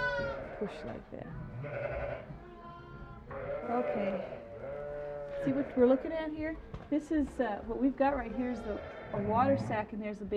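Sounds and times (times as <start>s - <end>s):
sheep bleating: 0.0s - 6.3s, 8.4s - 9.9s
speech: 0.6s - 2.5s, 3.3s - 10.3s.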